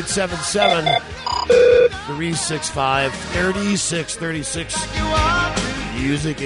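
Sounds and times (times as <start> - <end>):
speech: 0.0 - 5.4, 6.0 - 6.4
telephone ringing for a call-in radio show: 0.6 - 2.0.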